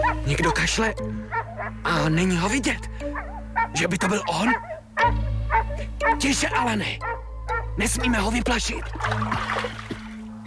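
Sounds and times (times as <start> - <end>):
speech: 0.1 - 3.1, 3.7 - 5.2, 6.1 - 7.1, 7.8 - 9.8
water splashing as someone wades across a stream: 8.7 - 10.4.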